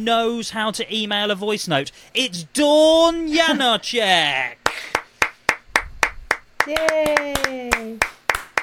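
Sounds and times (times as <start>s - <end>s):
speech: 0.0s - 4.9s, 6.7s - 8.1s
two people clapping: 4.6s - 8.6s.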